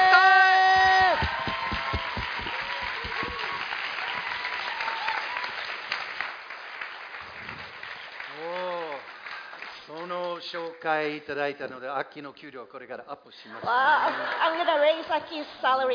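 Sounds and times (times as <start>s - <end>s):
audience applause: 0.0s - 9.9s
speech: 10.8s - 15.9s.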